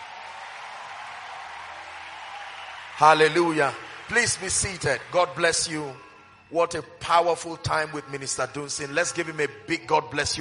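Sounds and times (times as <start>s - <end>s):
audience applauding: 0.0s - 6.4s
speech: 3.0s - 10.4s.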